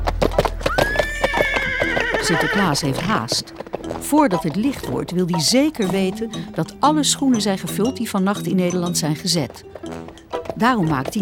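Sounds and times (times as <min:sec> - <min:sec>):
horse hooves clattering: 0:00.0 - 0:11.2
horse whinnying: 0:00.6 - 0:04.0
speech: 0:02.3 - 0:11.2.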